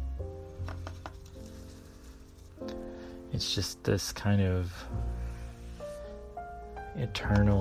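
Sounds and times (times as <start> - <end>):
paintbrush sweeping across paper: 0.9 - 2.8, 5.0 - 6.3
speech: 3.4 - 5.0, 7.0 - 7.5.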